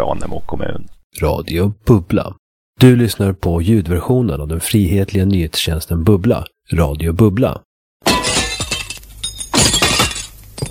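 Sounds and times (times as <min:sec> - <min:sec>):
speech: 0:00.0 - 0:07.7
pane of window glass shattering: 0:08.0 - 0:10.6
glass shards tinkling and clattering: 0:08.1 - 0:10.6.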